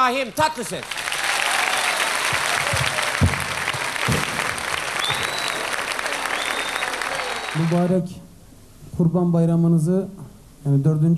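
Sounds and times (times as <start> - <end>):
speech: 0.0 - 1.0, 7.6 - 8.2, 9.0 - 11.1
crowd applause at a live holiday concert during Kurban Bayramı: 0.0 - 8.0
low thuds: 2.3 - 5.4.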